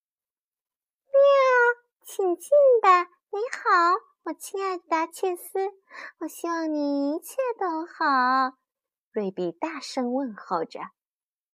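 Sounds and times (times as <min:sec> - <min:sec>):
person imitating a cat meow: 0:01.2 - 0:01.8
speech: 0:02.1 - 0:08.6, 0:09.2 - 0:11.0.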